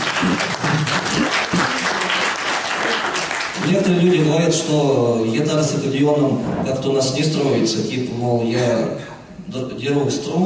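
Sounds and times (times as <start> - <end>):
audience applause: 0.0 - 3.9
speech: 3.7 - 10.4.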